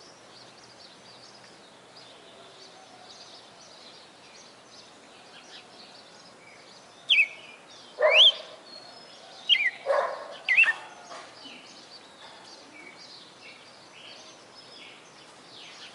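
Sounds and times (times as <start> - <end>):
female red-cowled cardinal singing in Fortaleza-CE: 7.1 - 8.5, 9.4 - 10.8.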